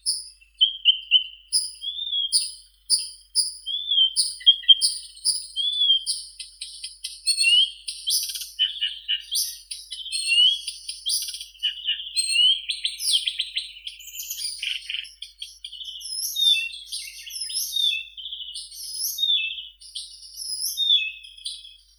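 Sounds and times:
Blyth's reed warbler Acrocephalus dumetorum singing: 0:00.0 - 0:21.9.

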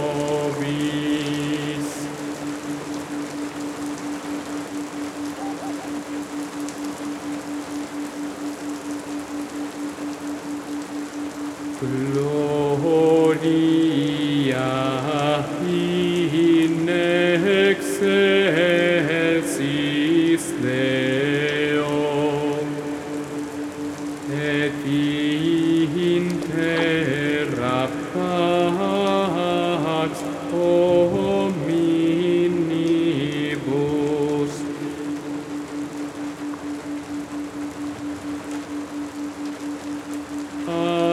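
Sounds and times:
Gregorian chants: 0:00.0 - 0:03.4, 0:11.8 - 0:35.8, 0:40.5 - 0:41.1
night rain: 0:00.0 - 0:41.1.

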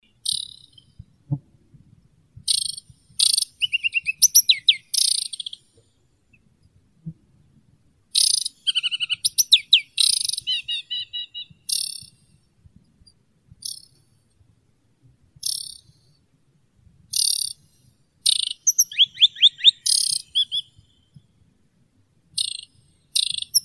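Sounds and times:
aquatic warbler Acrocephalus paludicola calling: 0:03.3 - 0:05.6, 0:08.5 - 0:12.0, 0:18.3 - 0:20.8, 0:23.2 - 0:23.6.

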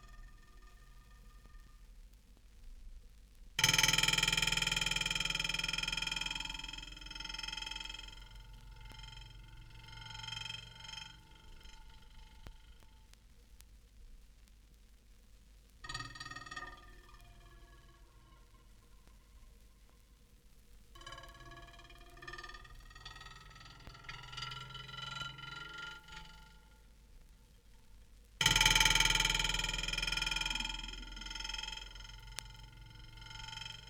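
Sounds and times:
glass rod vibrating: 0:00.0 - 0:01.8, 0:03.6 - 0:13.0, 0:15.8 - 0:19.5, 0:21.0 - 0:26.9, 0:28.4 - 0:33.8.

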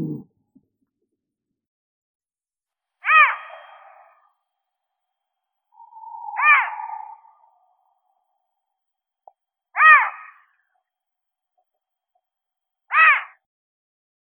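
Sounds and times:
eagle-owl bubo bubo: 0:03.0 - 0:04.3, 0:05.7 - 0:08.1, 0:09.8 - 0:10.6, 0:12.9 - 0:13.4.

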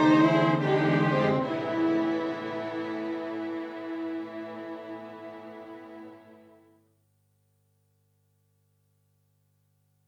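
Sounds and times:
adagio musical interlude: 0:00.0 - 0:06.6.

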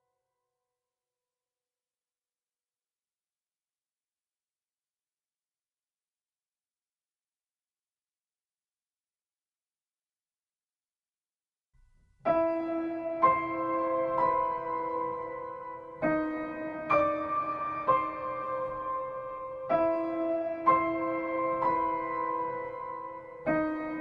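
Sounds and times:
piano melody: 0:12.2 - 0:23.9.

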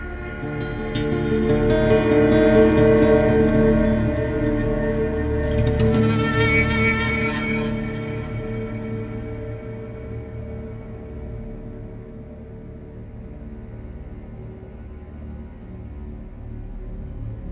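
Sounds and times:
guitar melody: 0:00.0 - 0:10.2.

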